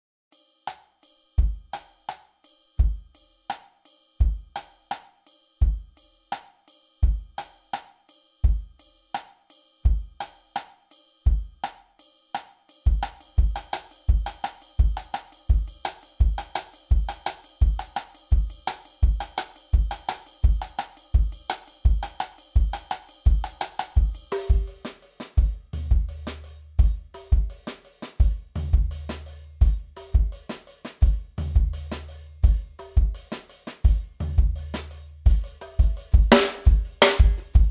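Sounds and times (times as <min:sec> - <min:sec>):
ska drum kit: 0:02.8 - 0:09.3, 0:12.7 - 0:37.7.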